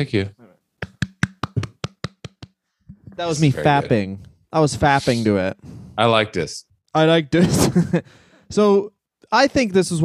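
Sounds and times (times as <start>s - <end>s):
speech: 0.0s - 0.4s, 3.2s - 10.0s
hand clapping: 0.8s - 3.1s.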